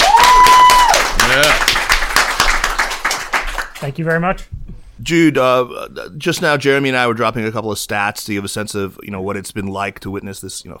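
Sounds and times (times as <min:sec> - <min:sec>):
crowd cheering: 0:00.0 - 0:03.6
audience applauding a guest speaker: 0:00.0 - 0:04.3
speech: 0:03.8 - 0:10.7.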